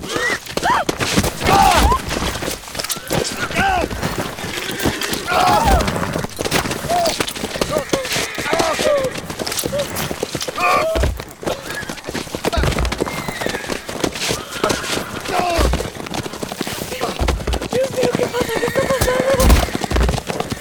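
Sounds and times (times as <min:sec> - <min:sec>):
people shouting: 0:00.0 - 0:09.9
restless horses stamping hooves: 0:00.0 - 0:20.5.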